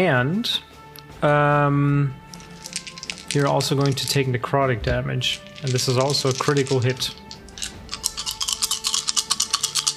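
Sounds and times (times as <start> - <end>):
speech: 0.0 - 2.2, 3.3 - 7.2
many dice being shaken: 2.2 - 4.3, 5.4 - 9.9.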